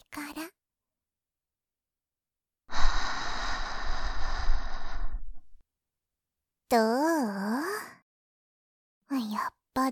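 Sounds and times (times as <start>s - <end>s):
long airy exhale against the ear: 2.7s - 5.6s
speech: 6.7s - 7.4s, 9.4s - 9.9s.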